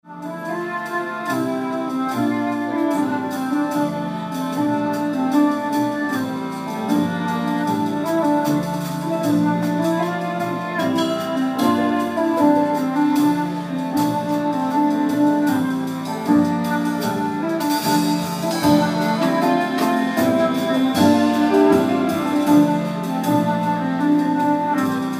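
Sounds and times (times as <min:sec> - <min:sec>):
jazz evening recorded at Pannonica: 0:00.0 - 0:25.1.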